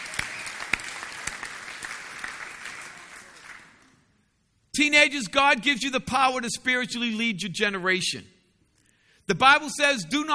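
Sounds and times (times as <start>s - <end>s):
crowd applauding: 0.0s - 4.1s
speech: 4.8s - 8.4s, 9.3s - 10.3s.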